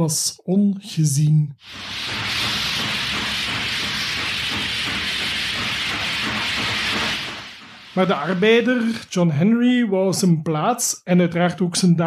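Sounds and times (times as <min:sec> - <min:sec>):
speech: 0:00.0 - 0:02.4, 0:08.0 - 0:12.0
steam-powered drill: 0:01.6 - 0:09.1.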